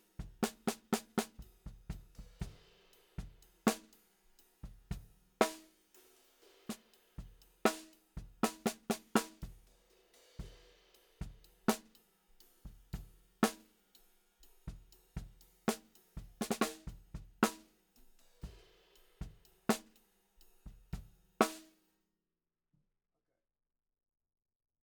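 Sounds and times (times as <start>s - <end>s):
snare drum: 0.0s - 4.0s, 4.6s - 9.7s, 10.3s - 12.0s, 12.6s - 13.8s, 14.6s - 17.7s, 18.4s - 20.0s, 20.6s - 21.7s.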